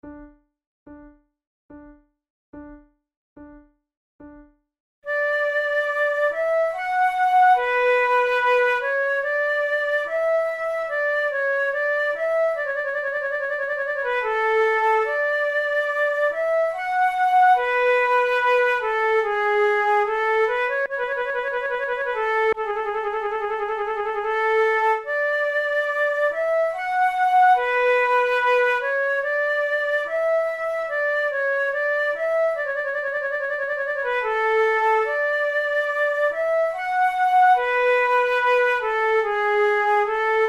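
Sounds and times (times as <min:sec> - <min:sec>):
flute playing a sarabanda: 0:05.1 - 0:40.4.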